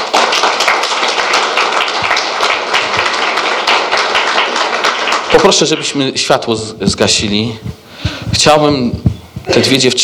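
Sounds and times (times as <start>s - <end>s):
audience applause: 0.0s - 6.0s
speech: 5.3s - 10.0s.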